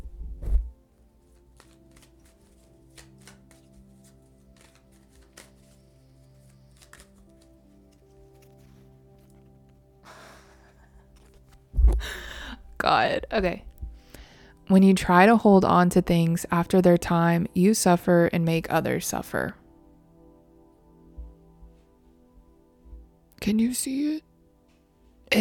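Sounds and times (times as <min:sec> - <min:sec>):
low hum: 0:00.0 - 0:00.8
deck of cards being shuffled: 0:00.4 - 0:09.8, 0:10.7 - 0:12.1
speech: 0:12.9 - 0:13.7, 0:14.7 - 0:19.6, 0:23.4 - 0:24.3.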